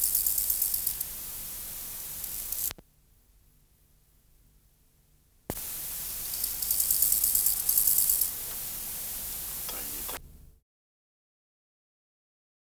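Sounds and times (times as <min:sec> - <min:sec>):
Chorthippus: 0:00.0 - 0:02.8, 0:05.5 - 0:10.4.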